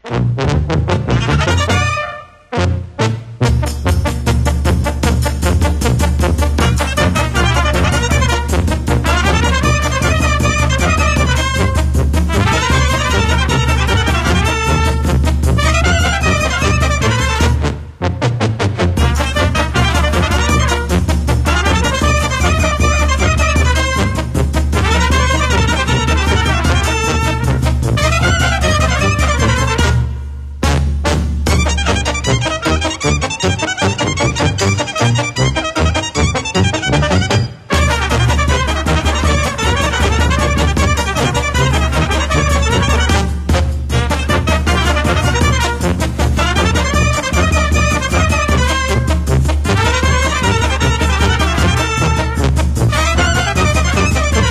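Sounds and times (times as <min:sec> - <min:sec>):
fanfare: 0:00.0 - 0:54.5.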